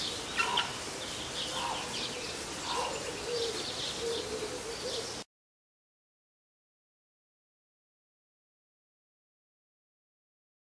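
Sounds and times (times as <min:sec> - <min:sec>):
harpy eagle calling: 0:00.1 - 0:05.1.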